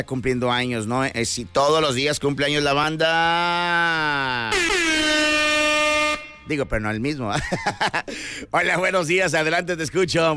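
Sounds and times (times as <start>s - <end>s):
speech: 0.0s - 5.3s, 6.5s - 10.3s
wake-up horn blast: 4.5s - 6.7s
laughter: 7.3s - 8.4s.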